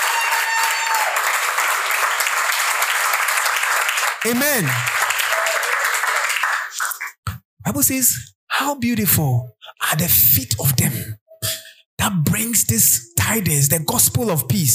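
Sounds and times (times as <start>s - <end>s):
audience clapping hands: 0.0s - 7.4s
speech: 4.2s - 5.0s, 7.7s - 14.7s.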